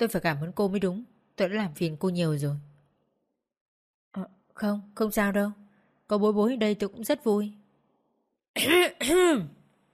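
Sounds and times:
speech: 0.0 - 2.7, 4.1 - 7.6, 8.6 - 9.6
man clearing his throat: 8.6 - 9.5.

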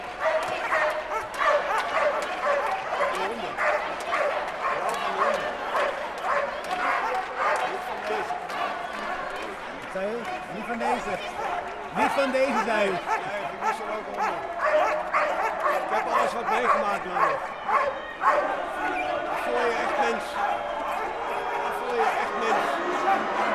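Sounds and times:
crowd of protesters' voices occupying Roeterseiland: 0.0 - 23.5
dogs barking and yipping, set on protesters occupying Roeterseiland: 0.2 - 7.8, 12.5 - 18.6.

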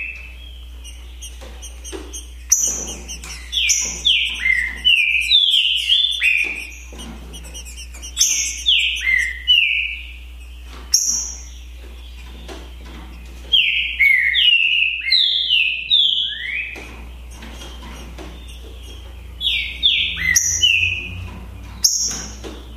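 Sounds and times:
green-winged saltator males singing in a song contest: 0.0 - 22.7.

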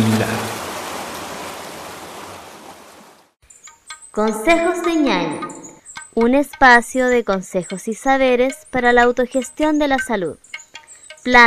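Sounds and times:
sea waves breaking on shore: 0.0 - 3.3
speech: 4.2 - 5.5, 6.2 - 10.5, 11.2 - 11.4.

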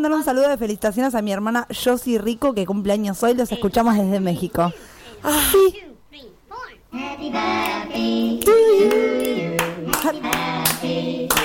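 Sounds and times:
speech: 0.0 - 6.3, 6.9 - 11.4
hand clapping: 8.4 - 11.4.

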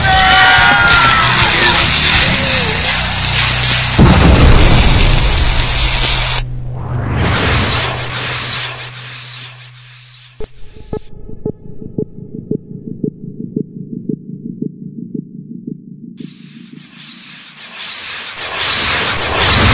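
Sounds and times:
computer crackling and blowing up: 0.0 - 10.4, 16.2 - 19.7
rumbling bursts: 0.0 - 19.7.

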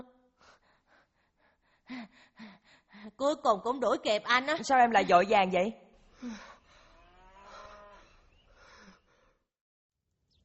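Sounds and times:
speech: 3.2 - 6.5
cow mooing: 7.0 - 8.2.

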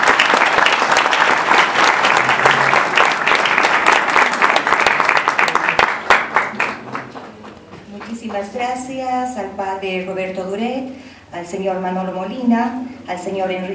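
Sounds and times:
audience applause for panel participants at a radio history event: 0.0 - 7.6
speech: 8.4 - 13.7.

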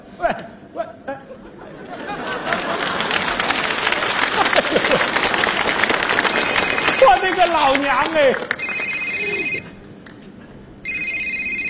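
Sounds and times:
laughter: 1.0 - 9.6
phone ringtone for an incoming call chirping: 6.3 - 7.2, 8.6 - 9.7, 10.8 - 11.6
speech: 7.5 - 8.5.

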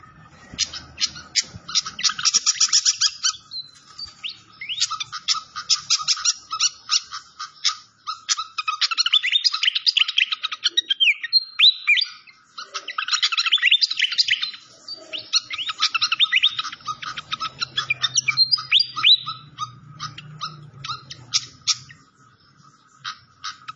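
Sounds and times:
Malaysian pied fantail song of chirps and trills: 0.0 - 23.7.

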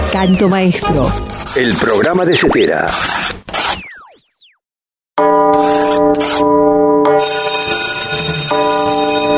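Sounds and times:
speech: 0.1 - 3.3
bell ringing: 5.2 - 9.3.

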